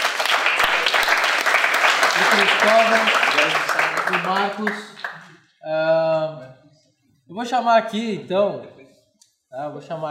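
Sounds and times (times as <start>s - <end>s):
round of applause: 0.0s - 5.4s
speech: 2.4s - 6.4s, 7.3s - 8.7s, 9.5s - 10.1s.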